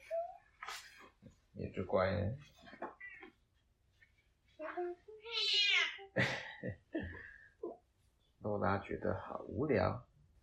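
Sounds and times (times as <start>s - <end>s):
speech: 1.6s - 2.6s, 4.8s - 6.8s, 8.5s - 10.1s
cat meowing: 5.3s - 6.1s.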